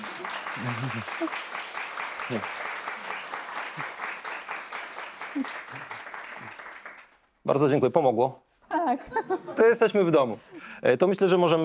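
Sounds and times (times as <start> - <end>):
audience applause: 0.0 - 7.3
speech: 0.6 - 1.6, 2.3 - 2.6, 5.4 - 5.7, 7.5 - 11.6
laughter: 8.8 - 10.5.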